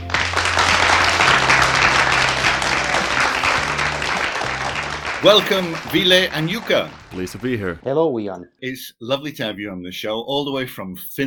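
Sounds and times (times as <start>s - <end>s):
round of applause: 0.0s - 7.8s
speech: 5.2s - 11.2s.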